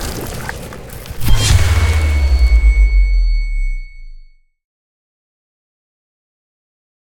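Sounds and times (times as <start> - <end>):
outro music: 1.2 - 4.3.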